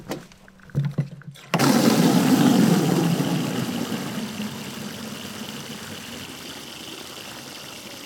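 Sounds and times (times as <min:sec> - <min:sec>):
rainwater from 1000 litre rain barrel tap filling watering can: 0:01.4 - 0:08.0.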